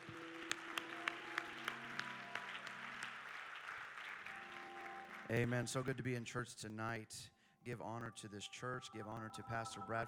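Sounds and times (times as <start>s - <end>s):
audience clapping hands: 0.0s - 6.2s
speech: 5.3s - 10.0s.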